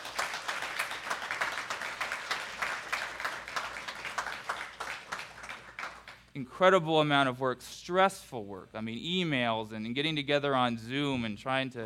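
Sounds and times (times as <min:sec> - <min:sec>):
audience applause: 0:00.0 - 0:06.2
speech: 0:06.4 - 0:11.8.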